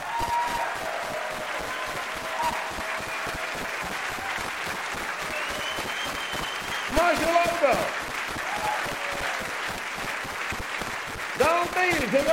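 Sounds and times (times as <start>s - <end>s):
faint whistles and cheers: 0.0s - 9.8s
crowd applauding: 0.0s - 12.3s
speech: 11.8s - 12.3s.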